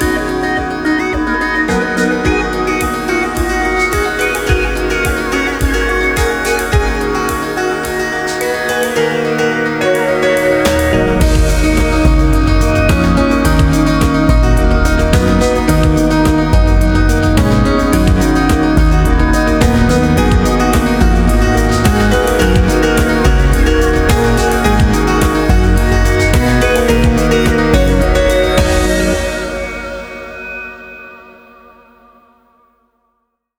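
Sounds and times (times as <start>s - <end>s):
first run jingle: 0.2s - 32.3s.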